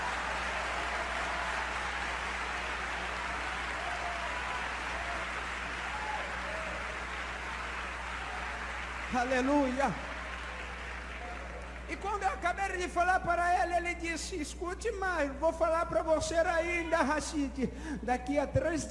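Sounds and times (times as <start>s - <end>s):
audience applauding: 0.0s - 12.4s
speech: 9.1s - 10.1s, 12.0s - 18.9s.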